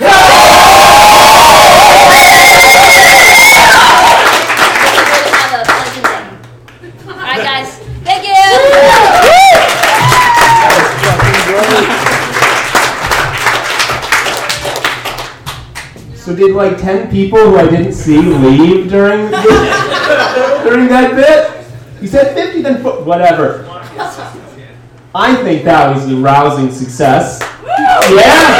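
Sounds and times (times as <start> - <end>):
shouts and whoops: 0.0 - 4.4, 8.3 - 10.9, 27.6 - 28.5
crowd of about 40 people in Chicago cheering and clapping: 0.0 - 6.5, 8.2 - 16.0, 27.4 - 28.5
speech: 16.4 - 23.6, 25.2 - 27.4, 28.0 - 28.5
laughter: 19.2 - 20.9, 23.8 - 24.7.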